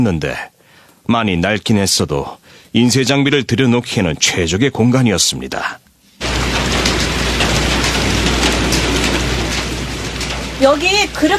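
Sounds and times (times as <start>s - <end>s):
speech: 0.0s - 0.5s, 1.1s - 5.8s, 10.6s - 11.3s
heavy rain leaking through a roof: 6.2s - 11.3s
low rumble: 6.2s - 11.3s.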